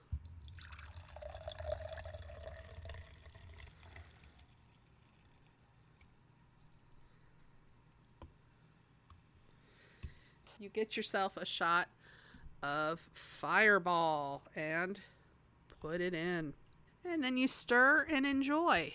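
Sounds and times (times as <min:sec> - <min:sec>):
hard cider poured into a glass: 0:00.2 - 0:06.2
speech: 0:10.6 - 0:11.9, 0:12.6 - 0:15.1, 0:15.8 - 0:18.9.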